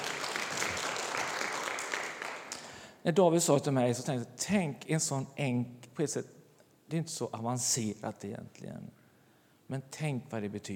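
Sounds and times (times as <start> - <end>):
applause: 0.0 - 2.8
speech: 3.0 - 9.0, 9.7 - 10.7.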